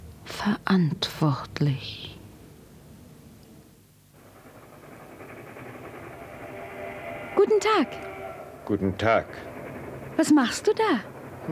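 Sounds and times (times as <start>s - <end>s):
speech: 0.4s - 2.1s, 7.6s - 8.1s, 8.7s - 9.5s, 10.2s - 11.5s
train rolling along the tracks: 4.0s - 11.5s.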